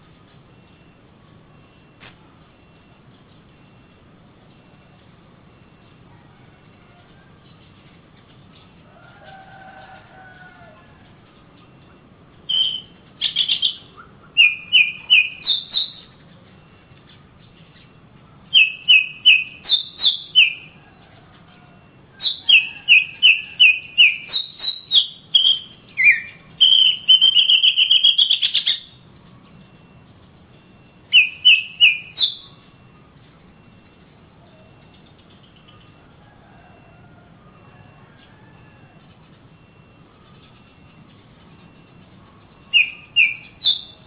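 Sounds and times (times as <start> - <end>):
Oriental magpie-robin singing: 12.4 - 16.2, 18.5 - 20.8, 22.2 - 29.0, 31.1 - 32.6, 42.6 - 44.0.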